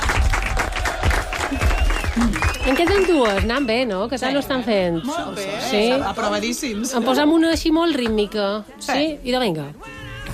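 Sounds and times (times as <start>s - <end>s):
audience clapping: 0.0s - 3.9s
speech: 2.2s - 10.0s.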